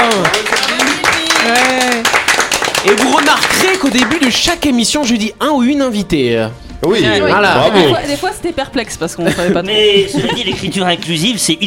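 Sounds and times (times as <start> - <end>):
audience applauding the guest: 0.0 - 4.2
speech: 2.9 - 11.6
laughter: 9.2 - 11.0.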